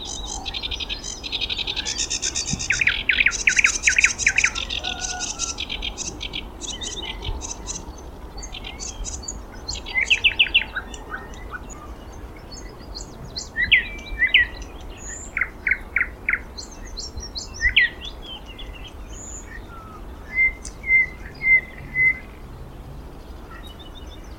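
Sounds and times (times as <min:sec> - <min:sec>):
thrush nightingale singing: 0:00.0 - 0:24.3.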